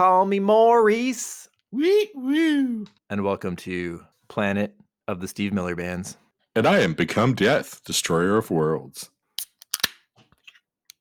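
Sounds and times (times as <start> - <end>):
speech: 0.0 - 9.1
drink can being opened with a spray: 9.4 - 10.0.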